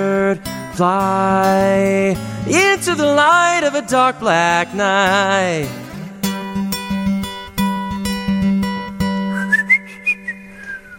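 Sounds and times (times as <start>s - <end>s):
speech: 0.0s - 5.8s
strummed guitar chords: 0.0s - 10.6s
person whistling imitation bird calls: 9.3s - 10.9s.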